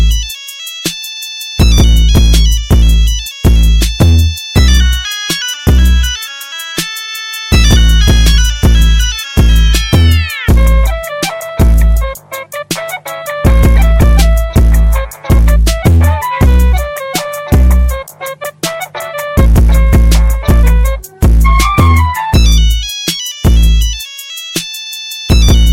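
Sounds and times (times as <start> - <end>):
hip hop type beat: 0.0 - 25.7.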